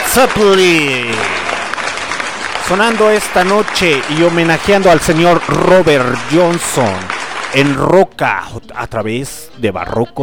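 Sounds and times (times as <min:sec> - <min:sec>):
applause: 0:00.0 - 0:08.1
speech: 0:00.2 - 0:01.4, 0:02.7 - 0:10.2.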